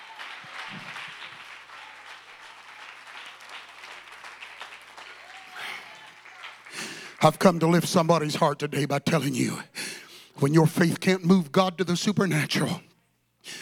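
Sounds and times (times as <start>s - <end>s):
scattered voices and cheers: 0.0s - 7.6s
large audience clapping hands: 0.0s - 8.3s
speech: 7.2s - 9.7s, 10.4s - 12.9s.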